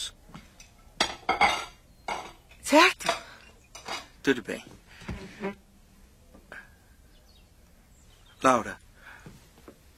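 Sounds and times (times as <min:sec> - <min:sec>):
dishes clinking while being washed: 0:00.6 - 0:04.2
speech: 0:02.7 - 0:03.0, 0:04.2 - 0:04.8, 0:05.4 - 0:05.6, 0:08.4 - 0:08.8.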